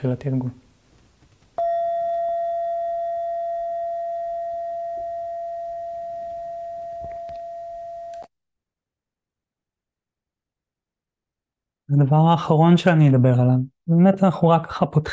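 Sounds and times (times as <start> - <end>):
speech: 0.0 - 0.6, 11.9 - 15.1
meditation bell ringing: 1.6 - 8.2.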